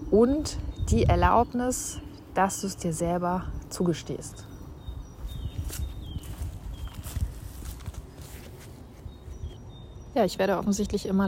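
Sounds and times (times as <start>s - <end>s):
bird chirps: 0.0s - 11.2s
speech: 0.1s - 4.5s, 10.2s - 11.2s
footsteps of a person walking outdoors: 1.1s - 9.8s.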